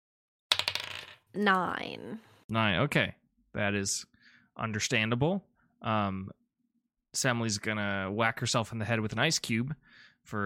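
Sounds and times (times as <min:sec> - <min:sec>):
die clattering onto a hard tabletop: 0:00.5 - 0:01.2
speech: 0:01.3 - 0:06.4, 0:07.1 - 0:10.4.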